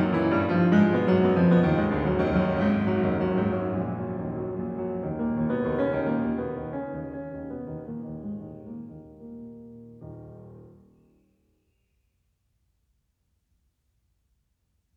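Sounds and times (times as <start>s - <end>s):
piano prelude in E flat minor: 0.0s - 11.5s.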